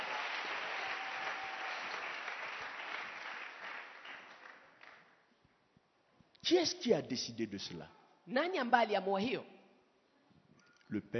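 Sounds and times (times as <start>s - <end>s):
church congregation clapping to applaud the Lord: 0.0s - 5.2s
speech: 6.5s - 9.6s, 10.9s - 11.1s.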